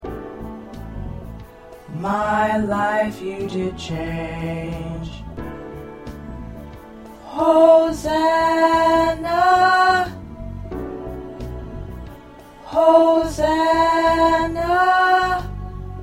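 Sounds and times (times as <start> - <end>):
tenor choir part singing: 1.8 - 5.3, 7.1 - 10.3, 12.4 - 15.9.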